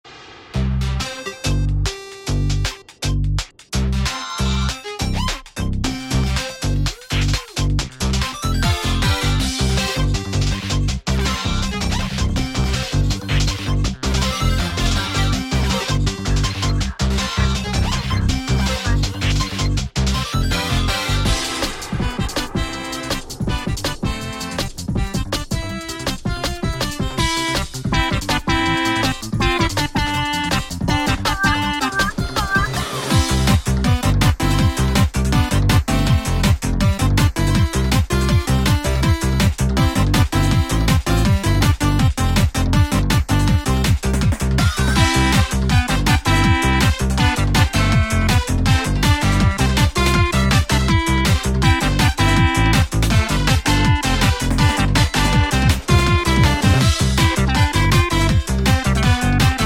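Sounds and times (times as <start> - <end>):
frenetic techno music: 0.4 - 59.6.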